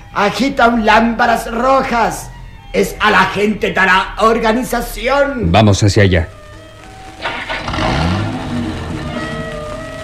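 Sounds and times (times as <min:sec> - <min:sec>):
speech: 0:00.1 - 0:06.4
car engine starting and accelerating: 0:07.0 - 0:10.0.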